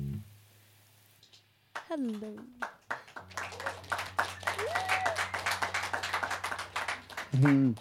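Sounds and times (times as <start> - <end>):
recorded clapping sound effect from sound box: 1.8 - 7.8
speech: 1.9 - 2.7, 7.4 - 7.8.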